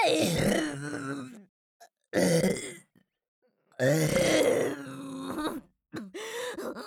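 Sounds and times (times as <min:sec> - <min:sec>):
person burping: 0:00.2 - 0:01.5, 0:02.1 - 0:02.9, 0:03.8 - 0:06.1.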